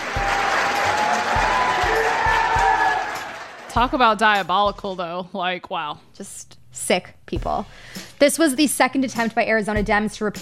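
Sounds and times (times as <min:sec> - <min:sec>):
round of applause by anti-abortion activists in packed audience: 0:00.0 - 0:03.7
speech: 0:03.8 - 0:10.4.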